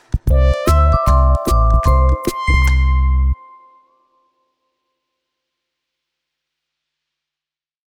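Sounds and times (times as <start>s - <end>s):
person whistling in an office: 0.4s - 3.7s.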